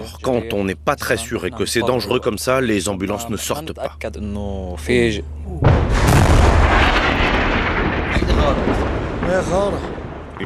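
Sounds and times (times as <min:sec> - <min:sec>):
speech: 0:00.1 - 0:06.1, 0:08.4 - 0:10.4
heavy explosion from a nearby strike at night: 0:05.6 - 0:10.4.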